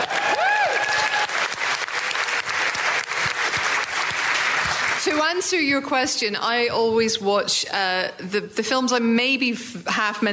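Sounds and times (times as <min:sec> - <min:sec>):
audience applause: 0:00.0 - 0:05.2
speech: 0:05.2 - 0:10.3.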